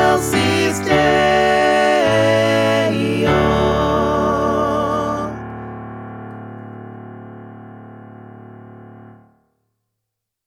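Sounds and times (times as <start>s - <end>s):
full Christmas choir singing: 0.0s - 5.6s.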